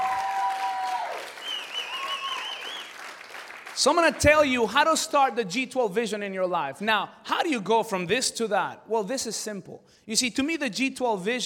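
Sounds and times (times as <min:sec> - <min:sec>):
audience round of applause: 0:00.0 - 0:04.3
speech: 0:03.8 - 0:11.4.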